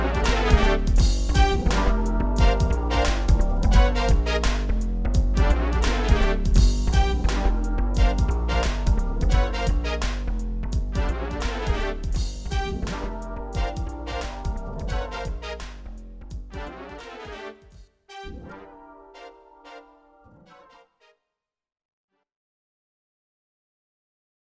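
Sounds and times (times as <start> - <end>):
groove music: 0.0 - 17.4.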